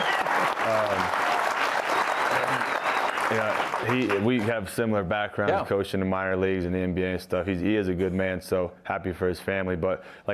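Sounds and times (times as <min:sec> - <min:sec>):
applause: 0:00.0 - 0:04.8
speech: 0:03.3 - 0:10.3.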